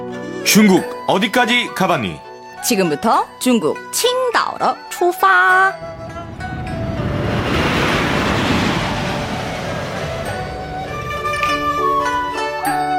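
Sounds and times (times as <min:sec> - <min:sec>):
speech: 0:00.5 - 0:06.1
steady airplane engine noise: 0:05.7 - 0:12.8.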